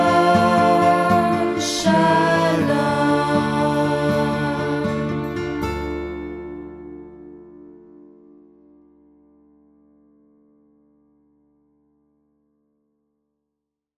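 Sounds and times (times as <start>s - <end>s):
benediction chant: 0.0s - 5.6s.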